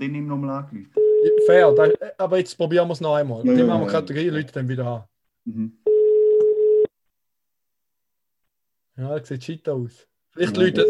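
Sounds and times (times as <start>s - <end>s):
speech: 0.0s - 5.9s, 9.0s - 10.8s
telephone call beeping tone: 1.0s - 2.0s, 5.9s - 6.9s, 10.6s - 10.8s.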